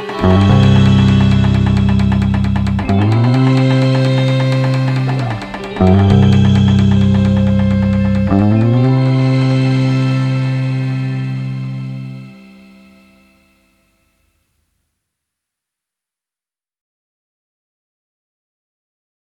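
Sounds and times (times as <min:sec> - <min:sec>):
instrumental music: 0:00.0 - 0:14.4.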